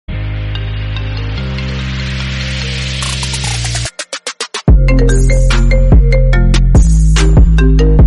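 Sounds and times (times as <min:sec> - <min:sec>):
iPhone trap remix music: 0:00.3 - 0:08.0.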